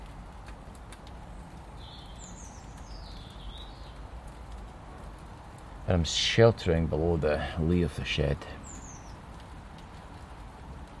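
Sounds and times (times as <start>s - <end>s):
steady rain falling straight down: 0.0s - 10.9s
faint bird chirps: 1.8s - 4.0s, 8.6s - 9.2s
speech: 5.9s - 8.7s.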